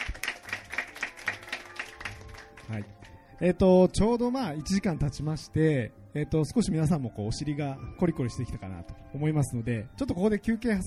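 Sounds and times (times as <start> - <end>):
audience clapping: 0.0 - 3.2
speech: 2.7 - 10.8.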